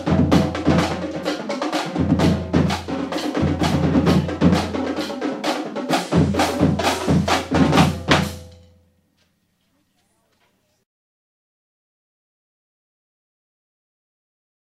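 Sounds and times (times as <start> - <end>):
marching band: 0.0 - 8.6
drumline drumming: 0.0 - 8.7.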